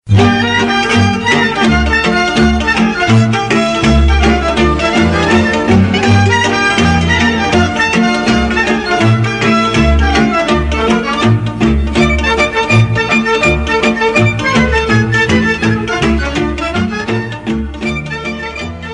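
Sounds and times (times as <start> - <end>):
Romanian hora folk dance music: 0.0 - 18.9.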